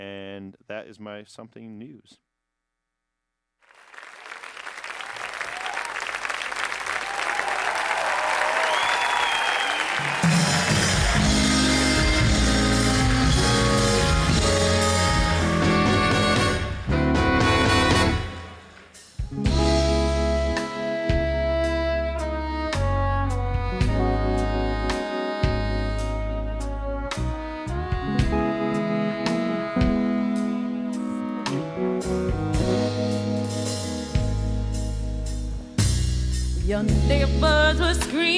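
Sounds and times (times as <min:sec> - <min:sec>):
speech: 0:00.7 - 0:02.3
crowd applause and cheering at a live concert: 0:03.7 - 0:14.4
full band playing a song live: 0:09.7 - 0:38.2.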